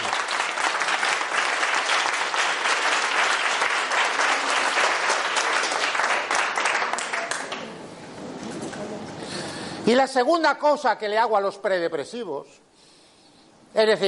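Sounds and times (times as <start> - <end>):
audience applause: 0.0 - 7.7
speech: 9.9 - 12.6, 13.8 - 14.0.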